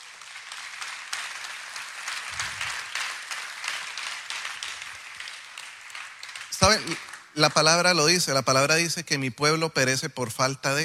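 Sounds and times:
audience applause: 0.0s - 8.3s
speech: 6.6s - 10.8s.

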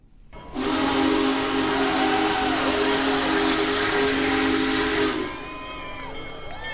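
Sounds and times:
steam locomotive whistle: 0.4s - 6.2s
steam hissing: 0.5s - 5.5s.

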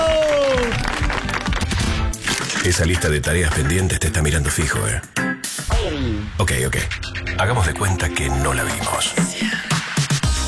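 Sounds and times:
audience applause: 0.0s - 3.8s
speech: 2.6s - 5.3s, 5.9s - 9.7s.

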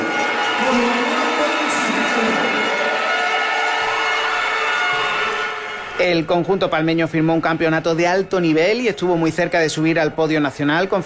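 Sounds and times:
arena crowd applauding at trophy ceremony: 0.0s - 6.3s
speech: 6.0s - 11.0s.

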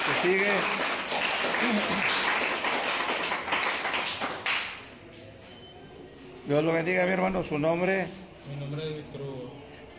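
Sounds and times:
applause: 0.0s - 4.9s
speech: 0.2s - 0.9s, 1.6s - 2.2s, 6.5s - 9.6s.

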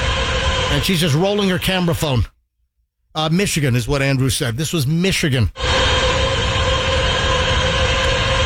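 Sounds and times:
data center mechanical roar recorded outside fence: 0.0s - 2.2s, 5.6s - 8.4s
steady humming tones: 0.0s - 2.2s, 5.6s - 8.4s
speech: 0.7s - 2.3s, 3.2s - 5.7s.

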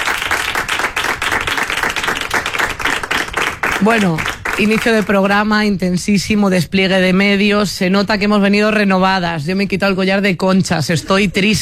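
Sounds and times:
audience applause: 0.0s - 5.2s
speech: 3.8s - 11.6s.

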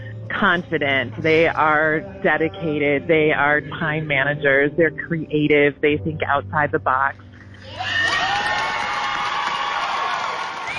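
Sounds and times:
speech: 0.4s - 8.0s
audience applause and cheering: 7.6s - 10.7s.

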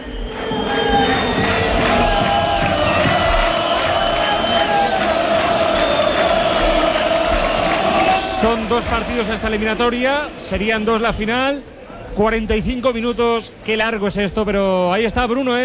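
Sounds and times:
crowd whistling: 0.0s - 8.7s
football crowd roar at Castalia stadium in Castellón during half-time: 0.0s - 12.8s
speech: 8.4s - 15.6s.

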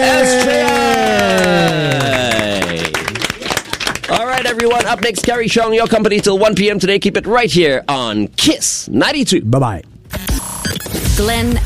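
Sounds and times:
audience applause: 0.0s - 6.3s
speech: 4.8s - 11.6s.

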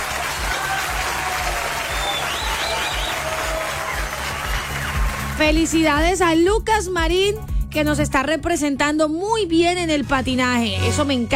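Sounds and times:
audience applause: 0.0s - 5.5s
speech: 5.4s - 11.3s.

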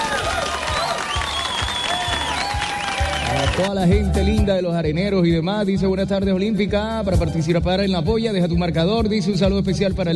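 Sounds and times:
cheering: 0.0s - 3.7s
crowd applause: 0.0s - 3.7s
whistles: 0.6s - 3.6s
speech: 3.6s - 10.1s.

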